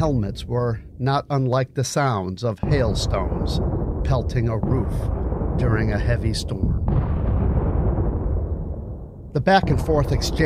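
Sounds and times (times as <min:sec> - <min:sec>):
speech: 0:00.0 - 0:07.1, 0:09.3 - 0:10.4
artillery shell explosion: 0:02.6 - 0:10.4.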